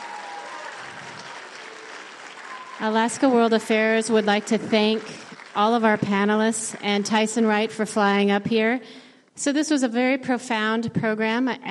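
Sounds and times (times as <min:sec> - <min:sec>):
audience applause for panelists: 0:00.0 - 0:07.2
speech: 0:02.8 - 0:11.7.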